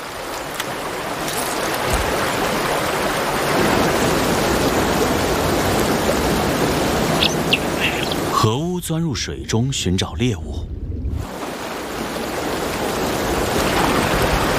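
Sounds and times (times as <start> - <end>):
waterfall: 0.0 - 10.2, 11.2 - 14.5
speech: 8.4 - 10.7.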